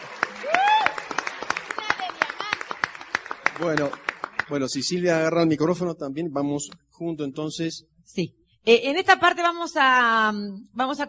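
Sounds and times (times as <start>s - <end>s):
audience applause: 0.0s - 5.0s
person whooping: 0.4s - 1.1s
speech: 3.6s - 11.0s.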